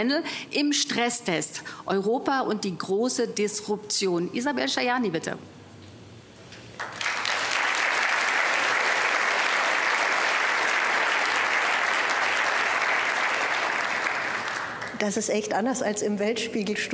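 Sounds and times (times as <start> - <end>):
speech: 0.0 - 5.6, 15.0 - 16.9
audience applause: 6.8 - 15.0.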